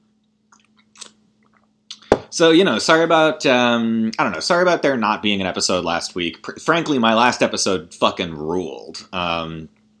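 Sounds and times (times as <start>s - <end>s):
faint steady hum: 0.0s - 9.9s
wet mouth clicks while sipping water: 0.5s - 2.1s
person gulping water: 0.5s - 2.3s
speech: 2.3s - 9.8s.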